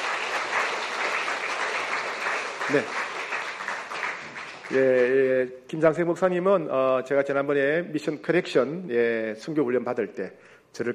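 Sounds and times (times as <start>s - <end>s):
audience applause welcoming missionary guests at a church gathering: 0.0s - 5.2s
speech: 2.7s - 3.0s, 4.7s - 10.9s.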